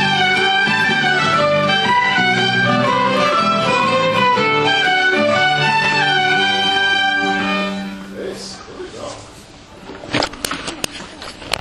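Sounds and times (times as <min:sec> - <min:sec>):
polska dance tune: 0:00.0 - 0:08.4.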